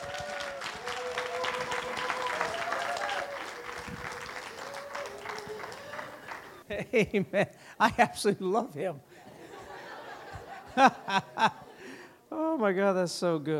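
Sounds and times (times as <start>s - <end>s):
audience clapping: 0.0s - 6.7s
laughter: 1.2s - 8.3s, 9.2s - 11.9s
speech: 6.8s - 9.1s, 10.8s - 11.6s, 12.6s - 13.5s.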